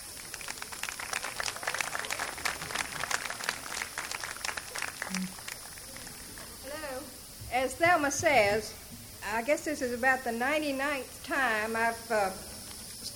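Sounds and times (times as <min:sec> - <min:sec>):
audience applause: 0:00.0 - 0:06.6
speech: 0:07.6 - 0:12.5.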